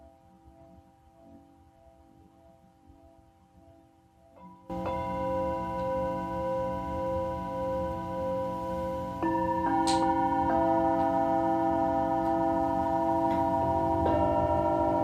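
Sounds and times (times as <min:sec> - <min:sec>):
singing bowl humming and ringing: 0:00.0 - 0:15.0
bright ping: 0:04.7 - 0:15.0.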